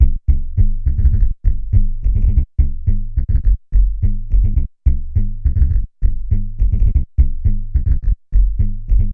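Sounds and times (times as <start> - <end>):
synth bass: 0.0 - 9.1.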